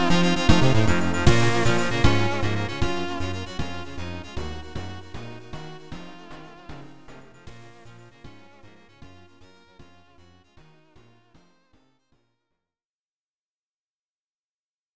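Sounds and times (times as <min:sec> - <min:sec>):
background music on YM2608 sound chip: 0:00.0 - 0:09.6.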